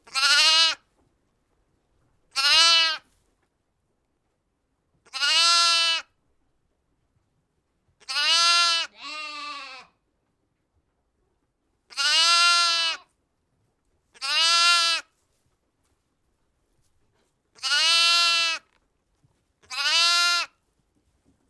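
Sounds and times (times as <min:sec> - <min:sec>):
lamb bleating: 0:00.1 - 0:00.8, 0:02.3 - 0:03.0, 0:05.1 - 0:06.1, 0:08.0 - 0:09.9, 0:11.9 - 0:13.1, 0:14.2 - 0:15.1, 0:17.6 - 0:18.7, 0:19.6 - 0:20.6.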